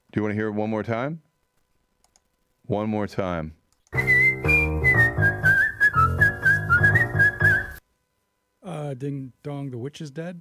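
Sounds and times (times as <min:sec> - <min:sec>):
speech: 0:00.2 - 0:01.3, 0:02.7 - 0:04.1, 0:08.9 - 0:10.4
backing track with a thumping beat: 0:04.0 - 0:07.8
person whistling a bouncy song melody: 0:04.0 - 0:07.8.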